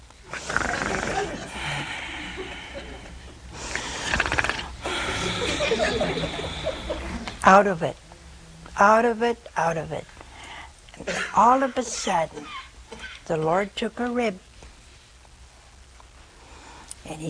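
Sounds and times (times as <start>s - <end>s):
person imitating snoring: 0.3s - 2.0s, 3.7s - 5.5s
laughter: 0.9s - 3.4s, 5.0s - 7.3s
speech: 7.5s - 8.0s, 8.8s - 10.1s, 11.1s - 12.6s, 13.3s - 14.5s.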